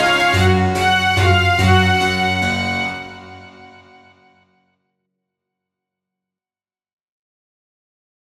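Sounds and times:
background music: 0:00.0 - 0:04.4.

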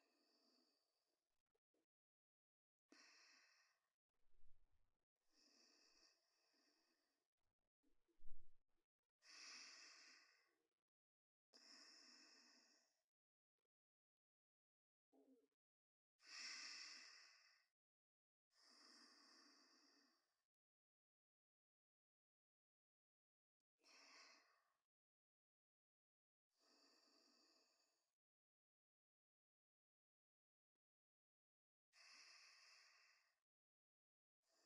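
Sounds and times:
person breathing in sleep: 0:02.9 - 0:03.9, 0:05.3 - 0:06.9, 0:09.3 - 0:10.5, 0:11.6 - 0:13.0, 0:16.3 - 0:17.7, 0:18.5 - 0:20.3, 0:23.9 - 0:24.7, 0:26.6 - 0:27.9, 0:31.9 - 0:33.3.

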